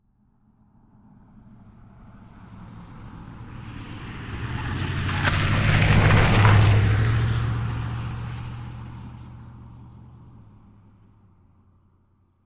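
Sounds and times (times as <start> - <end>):
Jeep Wagoneer passing fast around a corner: 1.4 - 11.4
Jeep Wagoneer tires skidding: 3.0 - 10.8.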